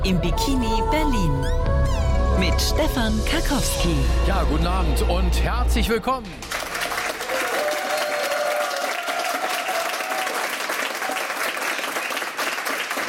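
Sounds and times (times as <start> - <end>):
speech: 0.1 - 6.6
audience applause: 6.4 - 13.0.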